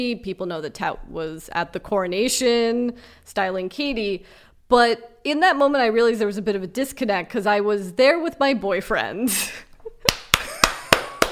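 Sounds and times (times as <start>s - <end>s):
speech: 0.0s - 10.2s
slow hand clap: 10.0s - 11.3s.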